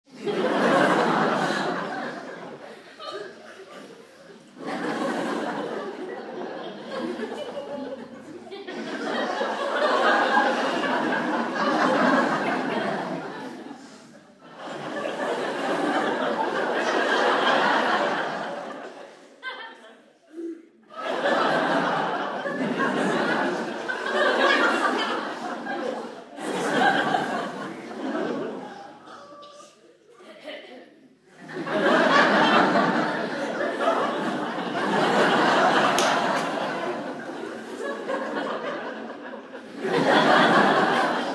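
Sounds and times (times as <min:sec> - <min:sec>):
theatre audience: 0:00.0 - 0:41.3
laughter: 0:00.1 - 0:41.3.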